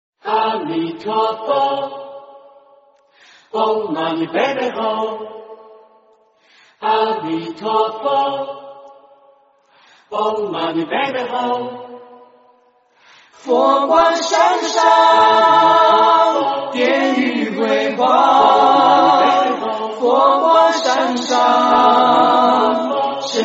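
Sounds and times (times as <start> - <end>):
person singing a cappella: 0.2 - 2.3, 3.5 - 5.5, 6.8 - 8.6, 10.0 - 11.9, 13.4 - 23.4.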